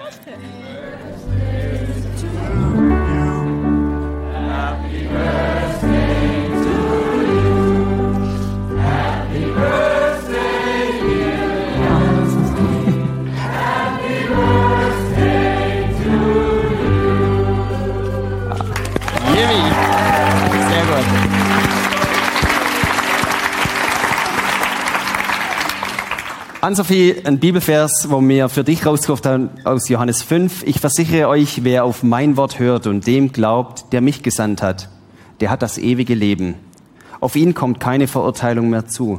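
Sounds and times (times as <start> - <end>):
cinema audience singing a birthday song: 0.1 - 22.0
speech: 0.2 - 1.4, 26.7 - 39.1
cinema audience applause and cheering: 18.5 - 26.6.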